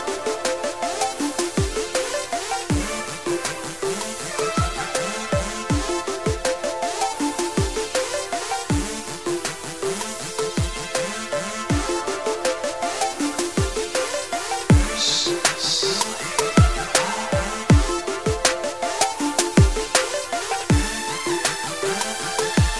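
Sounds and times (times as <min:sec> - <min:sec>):
festive Christmas tune: 0:00.0 - 0:22.7.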